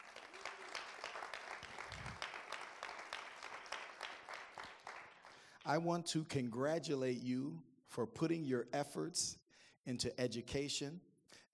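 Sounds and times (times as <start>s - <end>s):
audience of Penn State University students applauding: 0.0s - 5.7s
speech: 5.6s - 11.5s.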